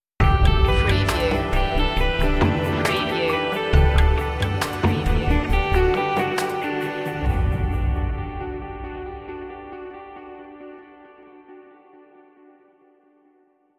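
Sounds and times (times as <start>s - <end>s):
music stinger: 0.2s - 11.1s.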